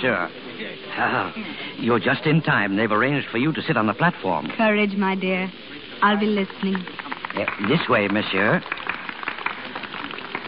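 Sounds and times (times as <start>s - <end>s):
speech: 0.0s - 8.8s
crowd clapping: 6.1s - 10.4s.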